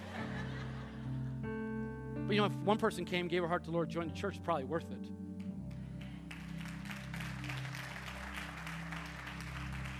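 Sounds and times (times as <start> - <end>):
laughter: 0.0 - 1.3
speech: 2.3 - 5.2
audience clapping: 5.7 - 9.9.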